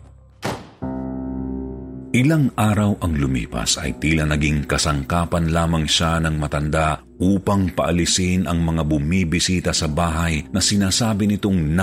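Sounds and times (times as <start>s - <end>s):
door being shut and locked: 0.4s - 0.9s
speech: 2.1s - 11.8s.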